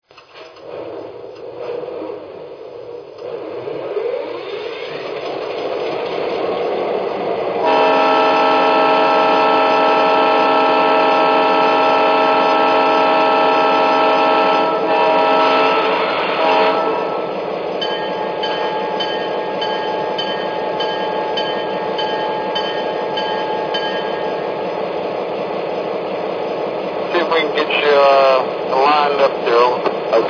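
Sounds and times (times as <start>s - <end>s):
GP38-2 train locomotive: 0.0s - 30.2s.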